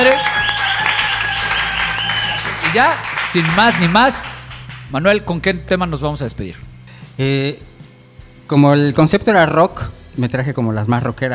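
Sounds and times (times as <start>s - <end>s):
crowd applauding: 0.0s - 4.9s
speech: 2.8s - 4.3s, 4.9s - 7.8s, 8.5s - 11.3s.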